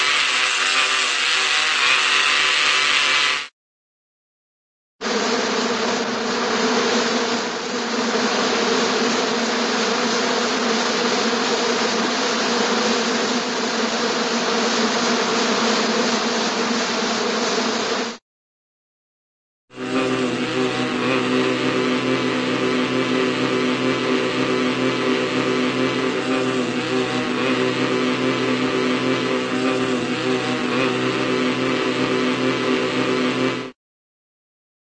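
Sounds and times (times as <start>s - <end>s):
single cartoon bee buzzing: 0.0s - 3.5s, 5.0s - 18.2s, 19.7s - 33.8s.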